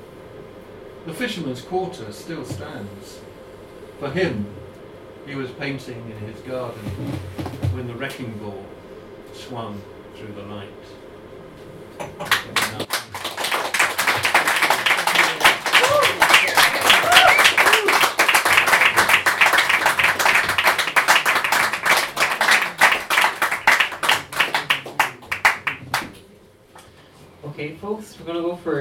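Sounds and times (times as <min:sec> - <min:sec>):
speech: 0:01.0 - 0:03.3, 0:04.0 - 0:04.6, 0:05.3 - 0:11.0, 0:12.0 - 0:13.0, 0:27.7 - 0:28.7
audience applause: 0:12.2 - 0:26.1.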